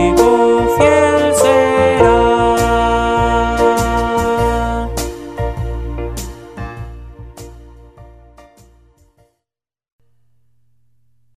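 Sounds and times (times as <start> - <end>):
Christian hymn for children: 0.0 - 7.0.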